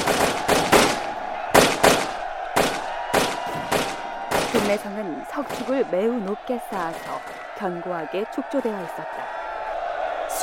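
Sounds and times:
matchlock musket gunfire: 0.0 - 4.9
speech: 4.7 - 9.4.

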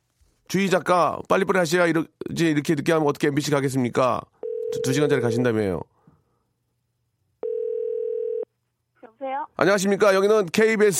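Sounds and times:
speech: 0.5 - 5.9, 9.3 - 10.9
telephone call connecting tone: 4.4 - 5.4, 7.4 - 8.5.

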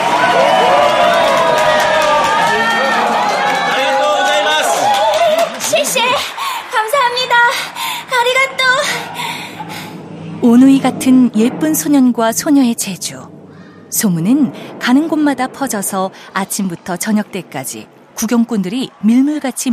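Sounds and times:
scattered clapping: 0.0 - 7.9
crowd cheering: 0.0 - 10.0, 14.9 - 19.7
speech: 10.8 - 19.7.

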